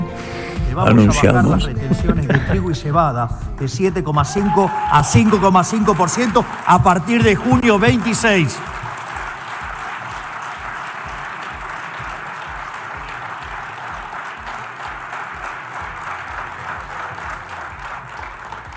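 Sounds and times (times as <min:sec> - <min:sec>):
low rhythmic thumps: 0:00.0 - 0:18.7
laughter: 0:00.7 - 0:03.3, 0:03.9 - 0:08.9
speech: 0:00.8 - 0:08.8
large crowd applauding at a presidential announcement: 0:04.1 - 0:18.7.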